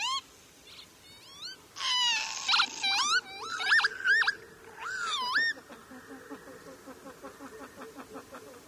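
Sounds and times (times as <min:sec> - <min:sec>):
northern lapwing call: 0:00.0 - 0:06.4.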